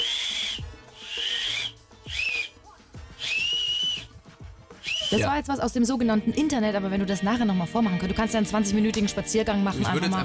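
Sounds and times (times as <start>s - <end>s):
shrill whistle blown through an acorn cap held between the thumbs: 0.0s - 4.2s, 4.8s - 5.3s
speech: 5.1s - 10.2s.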